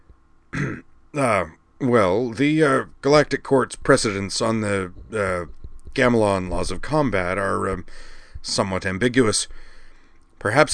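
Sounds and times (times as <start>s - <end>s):
man clearing his throat: 0.6s - 1.4s
speech: 1.2s - 9.6s, 10.4s - 10.7s.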